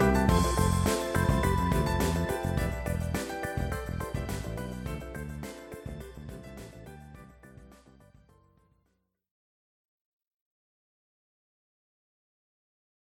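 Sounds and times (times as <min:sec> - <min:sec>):
swing music: 0:00.0 - 0:08.2.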